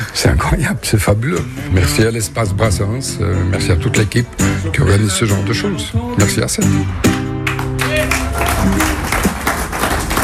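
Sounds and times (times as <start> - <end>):
speech: 0.2 - 7.3
light audience applause: 7.1 - 10.2.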